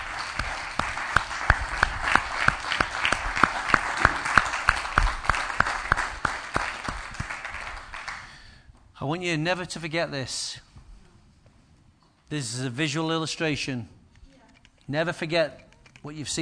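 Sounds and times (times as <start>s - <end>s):
standing ovation applause: 0.0s - 8.6s
speech: 9.0s - 10.7s, 12.3s - 14.0s, 14.9s - 16.4s.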